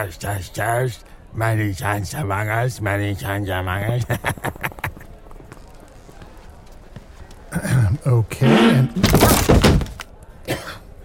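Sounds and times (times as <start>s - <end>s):
speech: 0.0s - 4.5s, 8.1s - 9.6s
laughter: 3.9s - 5.3s
wooden chair breaking under someone: 8.5s - 10.0s
chair pieces clattering: 9.0s - 10.0s.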